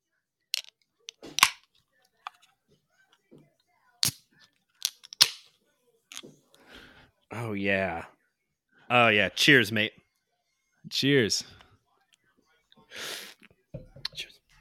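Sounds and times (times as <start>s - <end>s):
drink container being cracked open: 0.6s - 1.6s, 4.9s - 5.4s
speech: 7.4s - 8.1s, 8.9s - 10.0s, 10.9s - 11.6s.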